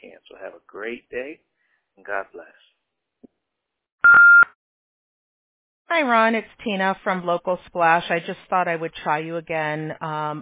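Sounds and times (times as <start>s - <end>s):
speech: 0.8s - 1.4s, 6.0s - 10.4s
voicemail answering machine beep: 4.0s - 4.5s.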